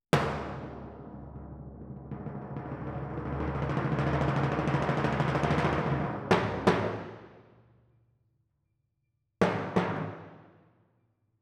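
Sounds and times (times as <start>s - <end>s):
timpani in F: 0.1s - 7.4s.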